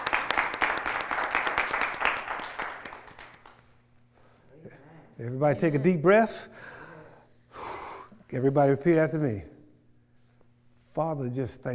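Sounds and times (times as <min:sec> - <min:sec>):
audience applauding: 0:00.0 - 0:03.7
speech: 0:05.2 - 0:06.8, 0:08.3 - 0:09.5, 0:11.0 - 0:11.7.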